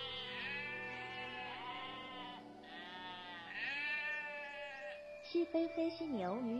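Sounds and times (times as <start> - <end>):
Pyrenean ibex bleating: 0.0 - 5.1
speech: 5.4 - 6.5.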